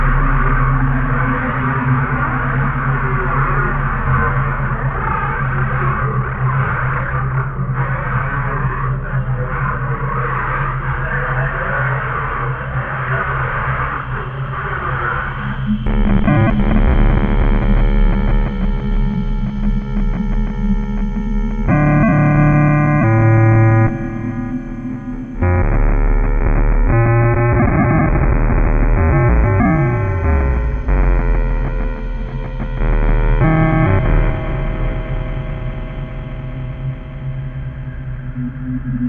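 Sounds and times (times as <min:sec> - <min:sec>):
ghostly ambient noise mix: 0:00.0 - 0:39.0.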